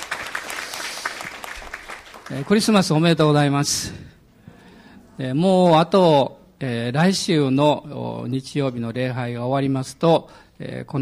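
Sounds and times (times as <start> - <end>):
audience applause: 0.0 - 3.0
speech: 2.3 - 4.1, 5.2 - 11.0.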